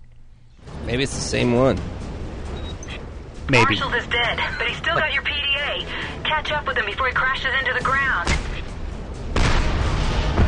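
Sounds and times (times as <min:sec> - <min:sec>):
speech: 0:00.9 - 0:02.0, 0:03.5 - 0:08.5
incendiary fire explosions in a video game: 0:08.1 - 0:10.4.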